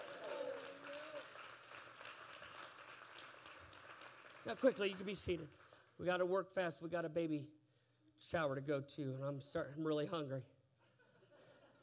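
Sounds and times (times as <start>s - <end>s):
audience clapping hands: 0.0s - 6.3s
speech: 4.4s - 7.6s, 8.2s - 10.6s.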